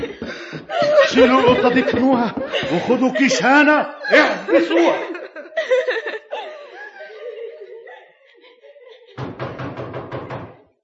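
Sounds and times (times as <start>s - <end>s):
person chuckling: 0.0s - 9.2s
speech: 1.1s - 5.1s
banging on a door: 9.2s - 10.7s.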